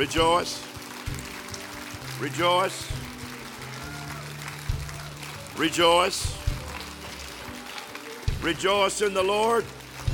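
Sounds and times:
speech: 0.0s - 1.2s, 2.2s - 3.0s, 5.6s - 6.4s, 8.4s - 9.8s
audience clapping hands: 0.0s - 10.1s.

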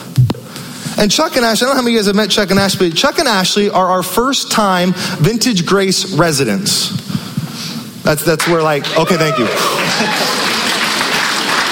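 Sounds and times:
speech: 1.0s - 7.2s, 8.0s - 10.3s
audience clapping: 8.3s - 11.7s.

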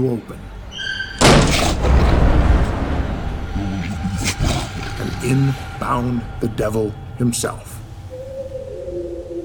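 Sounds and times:
speech: 0.0s - 0.6s, 5.0s - 7.8s
crash of thunder: 1.2s - 7.9s.

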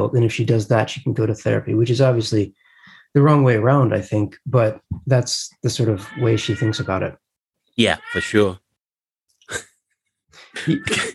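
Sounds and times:
speech: 0.0s - 7.2s, 7.8s - 8.6s, 9.5s - 9.7s, 10.5s - 11.1s
cat: 6.0s - 7.0s, 8.0s - 8.4s.

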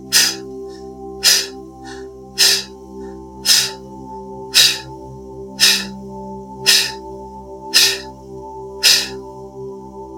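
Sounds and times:
forceful breathwork exhalations: 0.0s - 2.7s, 3.4s - 3.8s, 4.5s - 4.9s, 5.6s - 5.9s, 6.7s - 7.0s, 7.8s - 8.1s, 8.8s - 9.2s
steady sustained musical drone: 0.0s - 10.0s.

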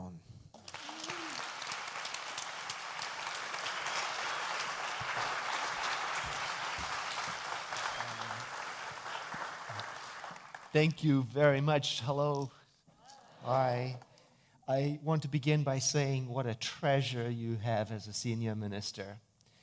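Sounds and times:
audience applauding to welcome a reverend: 0.6s - 10.9s
speech: 10.8s - 12.6s, 13.5s - 14.1s, 14.7s - 19.3s.

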